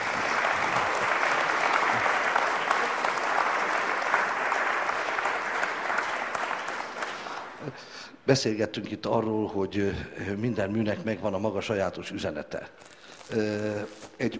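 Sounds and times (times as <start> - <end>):
audience applause: 0.0 - 7.7
speech: 7.8 - 14.3.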